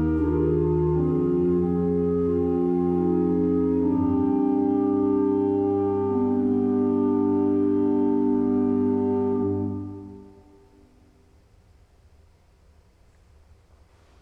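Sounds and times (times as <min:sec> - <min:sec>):
organ music: 0:00.0 - 0:10.9.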